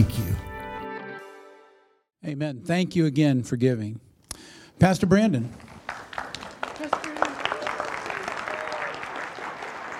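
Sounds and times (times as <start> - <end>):
speech: 2.2 - 4.1, 4.8 - 5.7
audience applause: 5.6 - 9.9.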